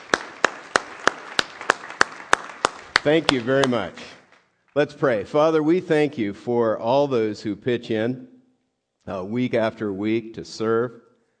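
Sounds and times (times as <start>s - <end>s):
audience applause: 0.0s - 4.9s
speech: 3.0s - 4.2s, 4.8s - 8.3s, 9.0s - 11.0s.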